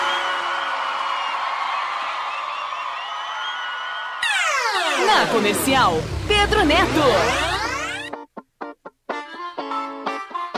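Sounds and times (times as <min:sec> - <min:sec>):
audience applause and cheering: 0:00.0 - 0:08.1
speech: 0:05.1 - 0:07.5.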